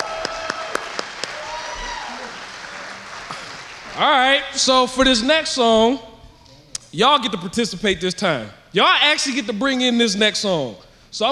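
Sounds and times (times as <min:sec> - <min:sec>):
audience applause: 0:00.0 - 0:04.6
speech: 0:04.0 - 0:06.1, 0:06.9 - 0:11.2.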